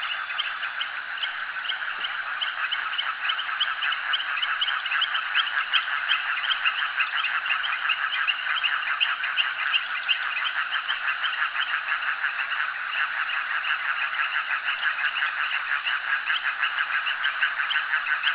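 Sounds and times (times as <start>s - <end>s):
frogs calling at a jetty: 0.0s - 18.3s.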